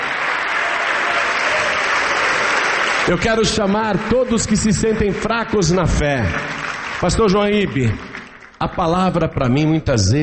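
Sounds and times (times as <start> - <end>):
church congregation applauding during a Portuguese-language service: 0.0 - 9.8
speech: 3.1 - 10.2.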